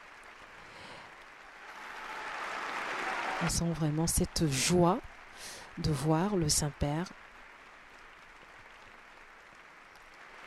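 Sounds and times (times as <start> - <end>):
applause in the cathédrale Sainte-Anne: 0.0 - 10.4
speech: 3.4 - 7.2.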